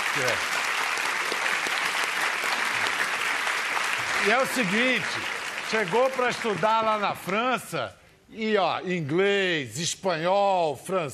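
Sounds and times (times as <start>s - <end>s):
audience applause: 0.0s - 7.3s
speech: 0.2s - 0.6s, 4.2s - 11.1s.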